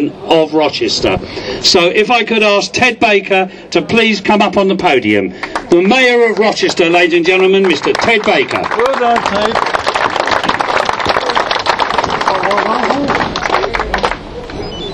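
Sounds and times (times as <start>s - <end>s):
speech: 0.0s - 9.9s
crowd clapping: 5.4s - 14.6s.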